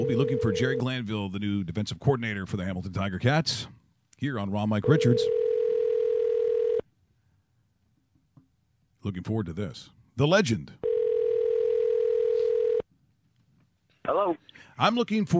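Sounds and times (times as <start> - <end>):
steady telephone dial tone: 0.0 - 0.8, 4.9 - 6.8, 10.8 - 12.8
speech: 0.0 - 5.4, 9.0 - 10.9, 14.1 - 15.3.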